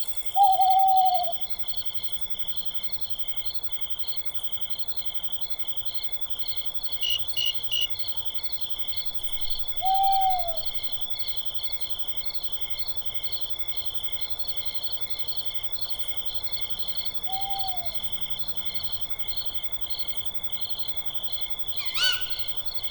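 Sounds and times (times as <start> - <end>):
owl in a forest: 0.4 - 1.5, 9.7 - 10.8, 17.2 - 18.1, 21.8 - 22.8.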